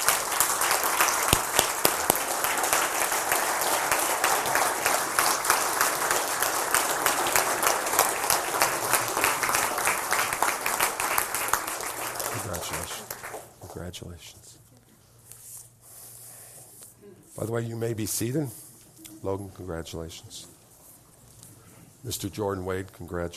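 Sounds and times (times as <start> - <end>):
church audience applauding: 0.0 - 13.8
speech: 17.4 - 18.6, 19.2 - 20.6, 22.0 - 23.3.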